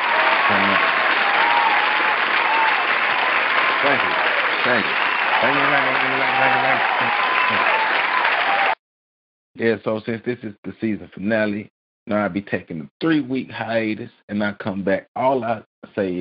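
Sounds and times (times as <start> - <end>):
audience applause: 0.0 - 8.8
speech: 3.9 - 7.8, 9.6 - 16.1.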